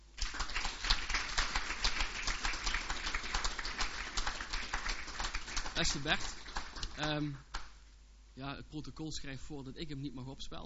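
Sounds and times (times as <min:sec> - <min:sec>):
crowd applauding: 0:00.2 - 0:07.4
speech: 0:05.8 - 0:06.4, 0:07.0 - 0:07.5, 0:08.4 - 0:10.6.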